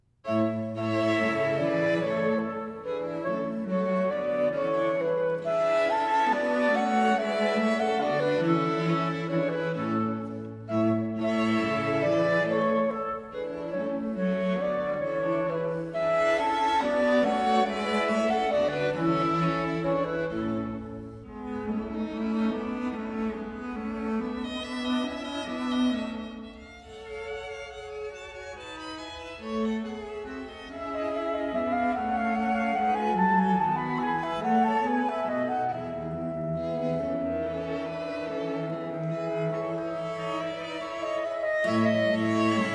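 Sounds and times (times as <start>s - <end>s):
clarinet quintet playing a minuet: 0.3s - 26.5s, 28.9s - 42.7s.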